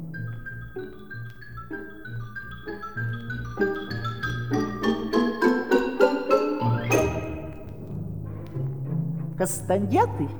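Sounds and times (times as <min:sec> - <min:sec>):
xylophone: 0:00.2 - 0:07.8
speech: 0:09.4 - 0:10.3.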